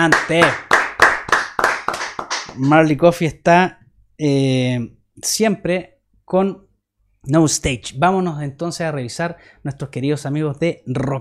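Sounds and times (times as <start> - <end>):
speech: 0.0 - 0.6, 2.6 - 6.6, 7.2 - 11.2
applause: 0.0 - 2.8.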